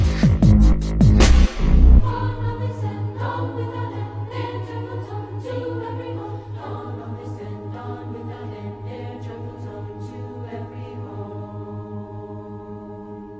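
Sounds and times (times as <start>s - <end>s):
dubstep remix: 0.0s - 2.0s.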